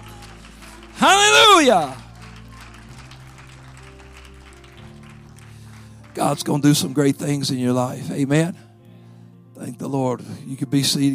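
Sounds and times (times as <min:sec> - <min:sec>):
audience clapping: 0:00.0 - 0:07.3
audience shouting: 0:01.0 - 0:01.9
speech: 0:01.0 - 0:02.0, 0:06.2 - 0:08.6, 0:09.6 - 0:11.1.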